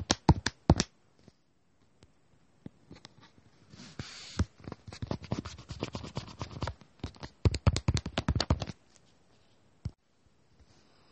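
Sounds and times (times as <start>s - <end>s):
pen or pencil scratching and tapping: 4.0s - 8.8s.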